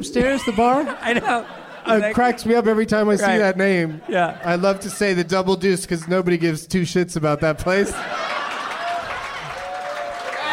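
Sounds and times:
speech: 0.0 - 8.3
laughter: 0.0 - 10.5
audience applause: 8.1 - 10.5.

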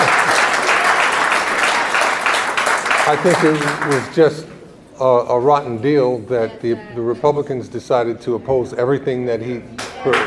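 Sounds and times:
audience applause: 0.0 - 4.4
speech: 3.1 - 10.2.

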